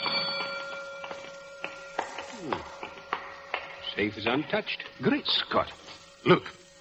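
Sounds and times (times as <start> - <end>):
burglar alarm bell ringing: 0.0 - 3.6
speech: 4.0 - 6.6.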